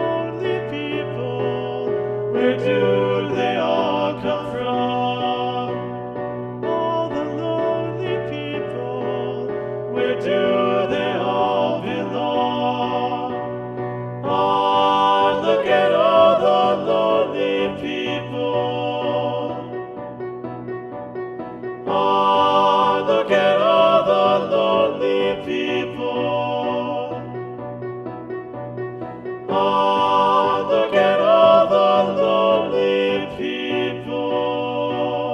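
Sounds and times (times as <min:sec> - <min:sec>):
SATB choir with balanced voices singing: 0:00.0 - 0:28.1, 0:28.9 - 0:35.3.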